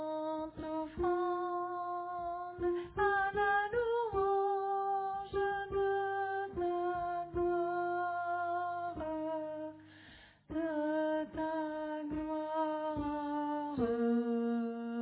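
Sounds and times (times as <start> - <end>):
alto voice singing: 0.0 - 9.9, 10.5 - 15.0.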